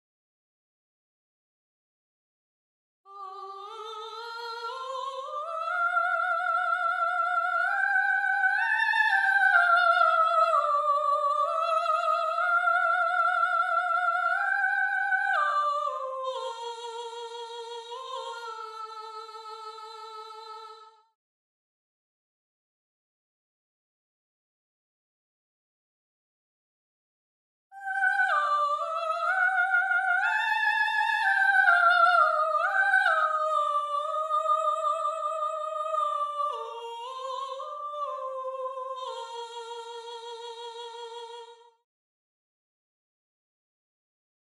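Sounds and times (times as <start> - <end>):
soprano singing: 3.1 - 20.8, 27.8 - 41.6.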